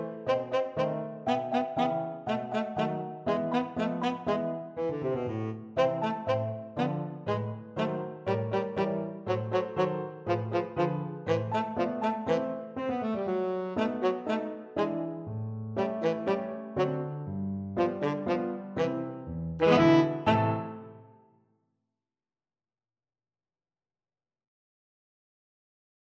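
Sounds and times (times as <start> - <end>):
tenor saxophone playing a classical ballet piece: 0.0 - 21.1.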